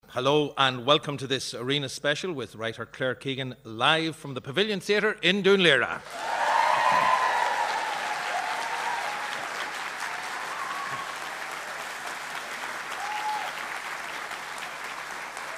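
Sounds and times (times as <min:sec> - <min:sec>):
speech: 0:00.2 - 0:06.4
audience applause in the Pavilion Theatre in Dún Laoghaire: 0:06.0 - 0:15.5.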